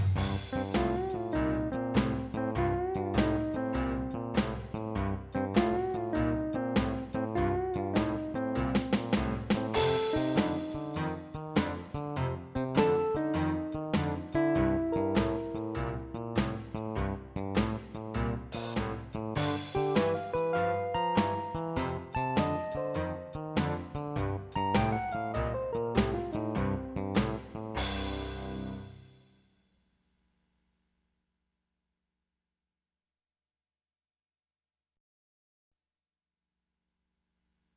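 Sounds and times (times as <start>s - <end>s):
barrelhouse bass: 0.2s - 29.0s.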